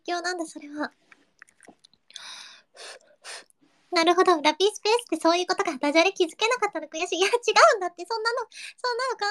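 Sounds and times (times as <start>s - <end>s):
speech: 0.1s - 1.1s, 3.9s - 9.2s
salt ramen noodle slurping: 1.1s - 2.0s
mouth clicks while eating salt ramen: 1.1s - 2.3s.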